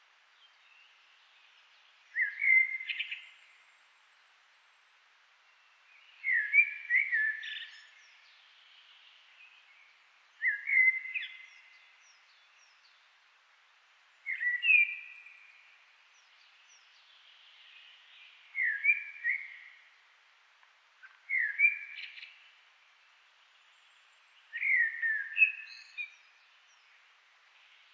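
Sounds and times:
Eurasian blackbird song: 2.1s - 3.4s, 6.0s - 8.4s, 10.4s - 13.0s, 14.2s - 19.9s, 21.0s - 22.5s, 24.4s - 27.0s.

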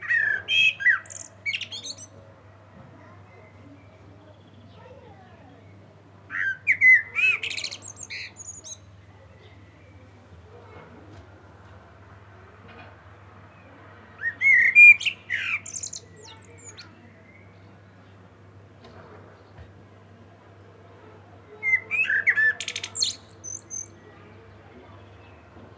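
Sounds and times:
Common blackbird singing: 0.0s - 2.2s, 5.5s - 10.0s, 14.2s - 17.8s, 21.6s - 25.7s.

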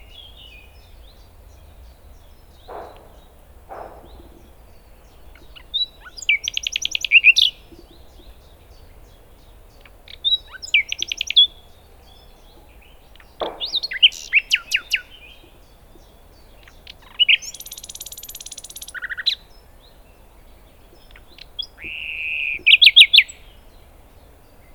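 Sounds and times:
common nightingale singing: 0.0s - 24.7s
soft low thuds: 1.6s - 5.6s, 13.4s - 14.4s.

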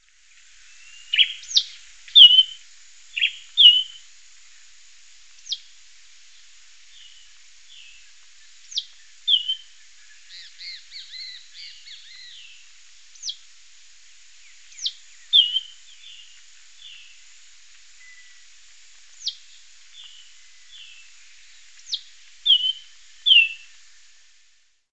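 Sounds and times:
bird calls: 0.6s - 4.6s, 6.3s - 13.4s, 14.4s - 17.4s, 19.1s - 24.0s.

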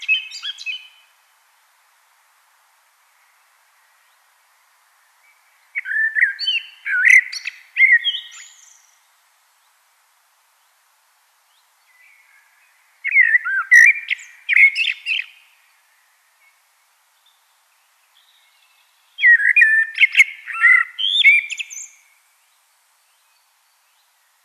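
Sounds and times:
common blackbird song: 0.0s - 1.3s, 5.0s - 9.8s, 11.4s - 24.4s.

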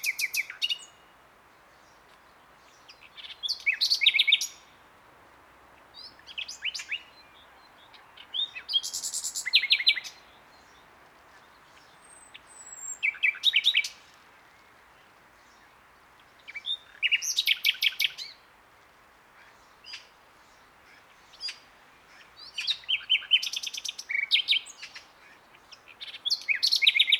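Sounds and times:
common nightingale Luscinia megarhynchos singing: 0.0s - 1.1s, 2.8s - 4.7s, 6.0s - 14.0s, 16.4s - 18.4s, 21.0s - 27.1s.

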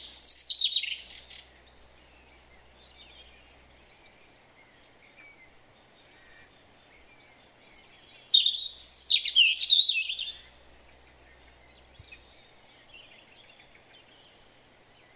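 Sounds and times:
European robin Erithacus rubecula song: 0.0s - 15.1s.

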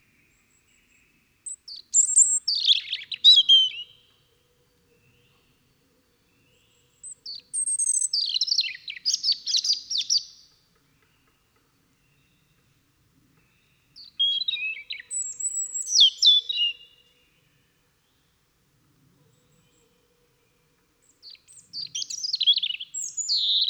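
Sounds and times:
European robin singing high-pitched phrases: 1.4s - 4.1s, 7.0s - 10.5s, 14.0s - 17.1s, 21.2s - 23.6s.

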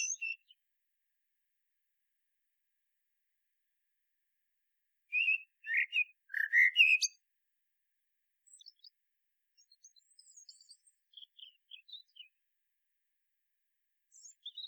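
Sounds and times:
common blackbird song: 0.0s - 0.6s, 5.1s - 7.2s, 8.5s - 8.9s, 9.6s - 12.3s, 14.1s - 14.6s.

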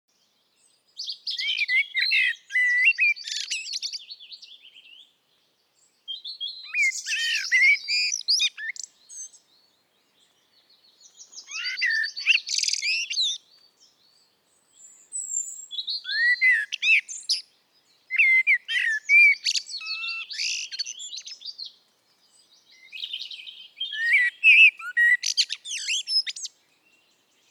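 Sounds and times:
Eurasian blackbird singing: 0.2s - 5.2s, 5.8s - 27.4s.

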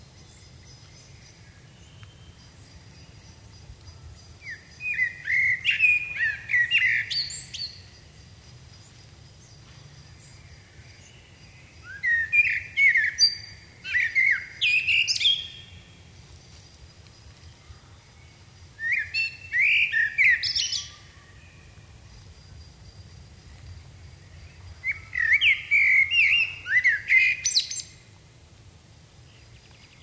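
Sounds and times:
common blackbird singing: 0.0s - 8.1s, 10.1s - 16.0s, 17.5s - 21.8s, 24.2s - 28.0s.

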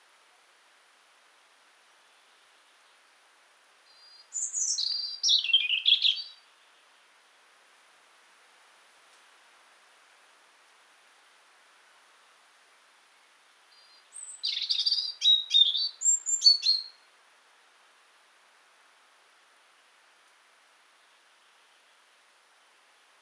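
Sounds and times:
European robin song: 3.9s - 6.8s, 13.7s - 17.1s.

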